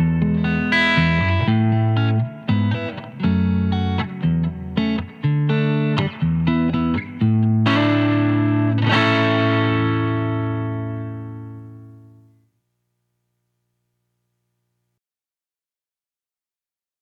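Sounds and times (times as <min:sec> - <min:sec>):
fingerstyle guitar on neck pickup with light grind and reverb: 0:00.0 - 0:12.5.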